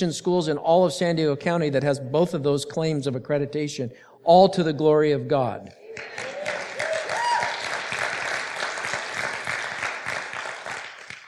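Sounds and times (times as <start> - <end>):
speech: 0.0 - 6.4
audience clapping: 5.8 - 11.2.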